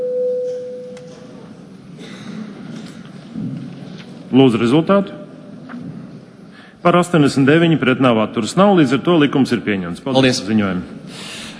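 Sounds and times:
electronic vote signal tone in the Latvian parliament: 0:00.0 - 0:01.0
faint room noise: 0:00.0 - 0:11.5
speech: 0:04.3 - 0:05.2, 0:06.8 - 0:11.3.

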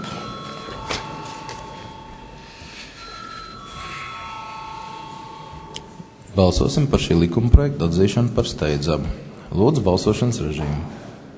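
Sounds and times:
parliament bell ringing before vote: 0:00.0 - 0:06.4
speech: 0:06.4 - 0:11.0.

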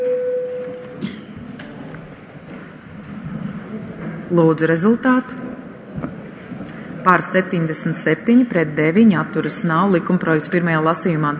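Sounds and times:
parliament voting bell signal: 0:00.0 - 0:01.0
speech: 0:04.3 - 0:05.4, 0:07.1 - 0:11.3.

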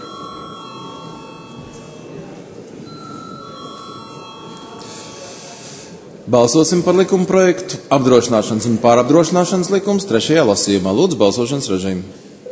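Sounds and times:
parliamentary voting bell ringing: 0:00.0 - 0:02.3, 0:02.9 - 0:05.3
low murmur of voices: 0:00.0 - 0:12.4
speech: 0:06.3 - 0:12.3.

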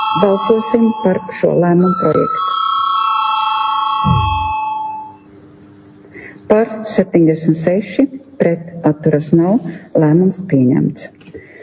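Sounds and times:
speech: 0:00.1 - 0:02.7, 0:06.5 - 0:11.5
parliament chamber bell rung before vote: 0:04.0 - 0:05.1
low thump: 0:04.1 - 0:04.7.

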